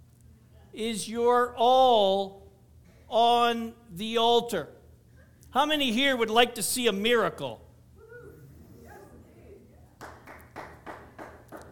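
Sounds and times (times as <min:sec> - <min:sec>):
speech: 0:00.7 - 0:02.4, 0:03.1 - 0:04.8, 0:05.5 - 0:07.6
audience clapping: 0:10.0 - 0:11.7.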